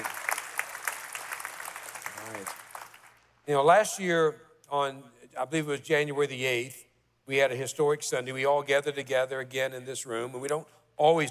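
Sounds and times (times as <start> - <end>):
congregation applauding church staff during a Sunday service: 0.0 - 3.3
speech: 2.4 - 2.6, 3.4 - 11.2.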